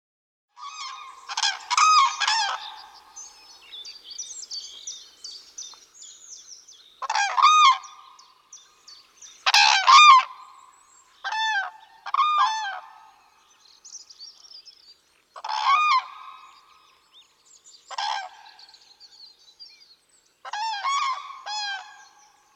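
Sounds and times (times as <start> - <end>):
flock of common cranes calling: 0.6 - 3.6, 7.0 - 8.4, 9.4 - 13.3, 15.4 - 16.8, 17.9 - 18.6, 20.5 - 22.4.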